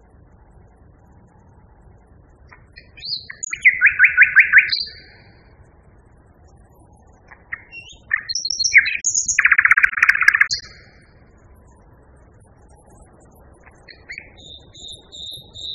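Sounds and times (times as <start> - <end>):
common nightingale singing: 2.5 - 5.6, 6.7 - 11.8, 12.6 - 15.7.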